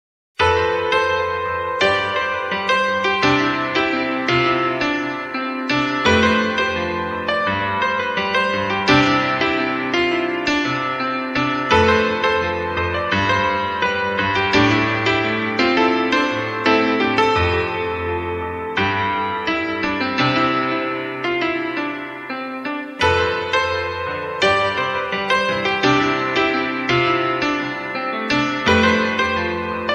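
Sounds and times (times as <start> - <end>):
piano: 0.4 - 29.9.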